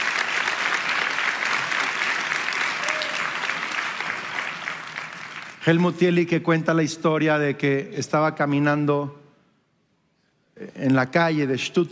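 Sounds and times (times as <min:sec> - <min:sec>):
church audience applauding: 0:00.0 - 0:05.8
speech: 0:05.6 - 0:09.2, 0:10.8 - 0:11.8.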